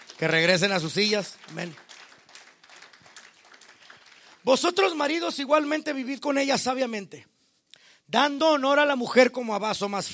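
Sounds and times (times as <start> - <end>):
audience applause: 0.0 - 4.7
speech: 0.2 - 1.9, 4.4 - 7.3, 8.1 - 10.1.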